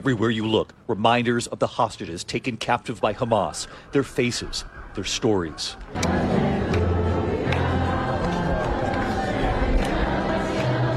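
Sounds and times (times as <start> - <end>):
speech: 0.0 - 6.4
crowd quietly singing a hymn: 5.3 - 10.9.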